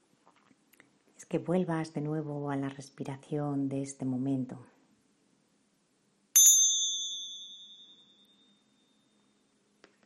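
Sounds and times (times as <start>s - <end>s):
speech: 1.3s - 4.8s
small meditation bells ringing: 6.4s - 9.3s.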